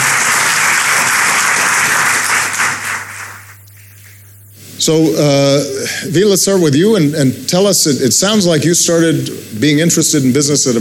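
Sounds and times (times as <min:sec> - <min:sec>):
audience applause: 0:00.0 - 0:03.6
speech: 0:04.8 - 0:10.7.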